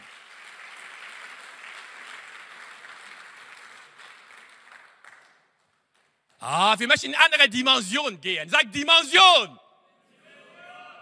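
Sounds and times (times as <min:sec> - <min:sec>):
crowd applauding: 0:00.0 - 0:06.6
speech: 0:06.4 - 0:09.6.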